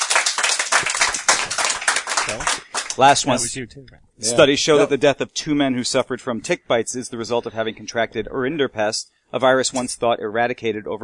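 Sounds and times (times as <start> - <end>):
audience clapping to vote during a quiz game: 0.0 - 3.5
speech: 2.3 - 11.0.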